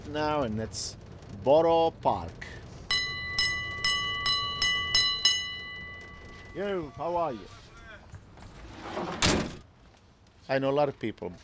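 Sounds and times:
low rumble of a Brooklyn street: 0:00.0 - 0:07.2
speech: 0:00.1 - 0:02.6, 0:06.6 - 0:07.6, 0:10.5 - 0:11.4
bright metallic bell clanging on a Brooklyn street: 0:02.9 - 0:07.0.

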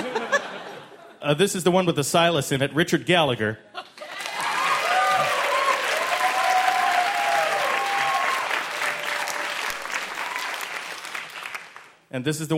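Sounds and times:
laughter: 0:00.0 - 0:01.2
speech: 0:01.3 - 0:03.9, 0:12.1 - 0:12.5
crowd clapping loudly: 0:03.9 - 0:12.0
faint whoops: 0:04.2 - 0:09.6.

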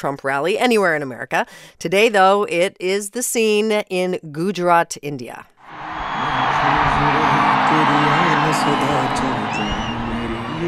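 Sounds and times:
speech: 0:00.0 - 0:06.0, 0:07.7 - 0:09.8
huge crowd cheering inside a cricket stadium: 0:05.6 - 0:10.6.

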